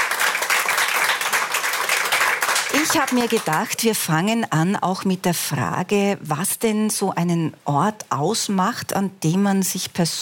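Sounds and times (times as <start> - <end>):
audience applauding experts on a stage: 0.0 - 3.7
speech: 2.8 - 10.2.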